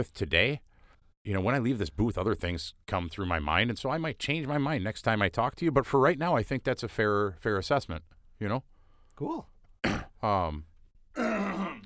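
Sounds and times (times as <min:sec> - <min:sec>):
speech: 0:00.0 - 0:09.5, 0:10.2 - 0:11.4
person coughing: 0:09.8 - 0:10.2, 0:11.2 - 0:11.8
strained voiced groan: 0:11.2 - 0:11.8.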